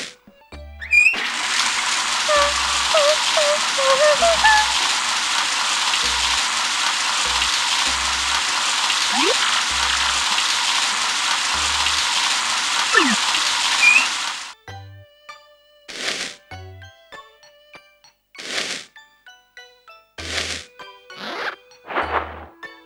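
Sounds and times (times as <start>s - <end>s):
shower running: 0.9s - 14.5s, 15.9s - 16.4s, 20.2s - 22.1s.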